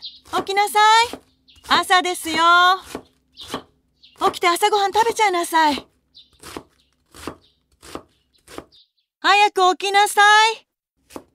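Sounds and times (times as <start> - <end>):
speech: 0.0 - 2.9, 4.2 - 5.9, 9.2 - 11.2
knife shredding cabbage on a board: 0.2 - 8.7, 11.0 - 11.3.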